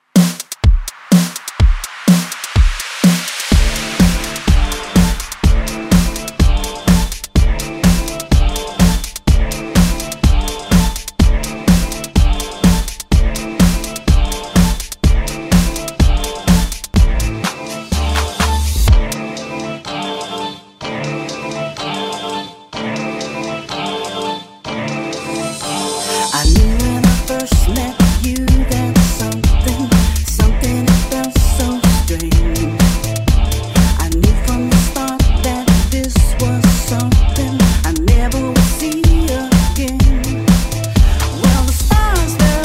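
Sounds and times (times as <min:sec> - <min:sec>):
remix at 124 BPM: 0:00.1 - 0:42.6.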